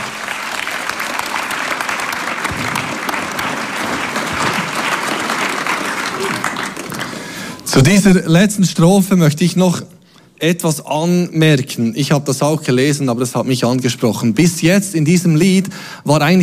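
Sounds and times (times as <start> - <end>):
audience applause: 0.0 - 7.7
speech: 7.8 - 16.4.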